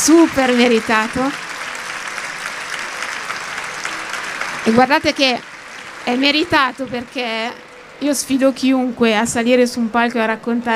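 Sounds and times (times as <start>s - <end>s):
speech: 0.0s - 1.5s, 4.6s - 10.7s
audience applause at a stage event: 0.0s - 8.0s.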